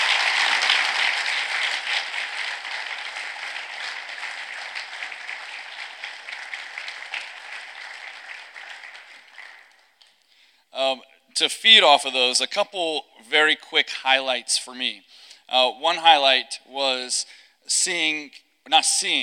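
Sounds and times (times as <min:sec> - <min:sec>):
audience applause: 0:00.0 - 0:10.1
speech: 0:10.8 - 0:19.2.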